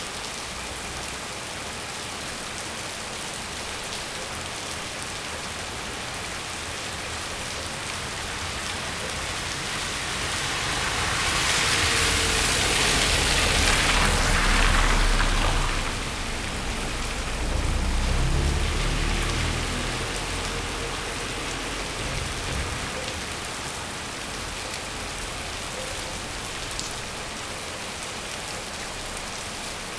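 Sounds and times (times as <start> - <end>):
rain in Potamia: 0.0 - 29.9
car turning left by a closed bakery terrace in Potamia: 7.9 - 25.3.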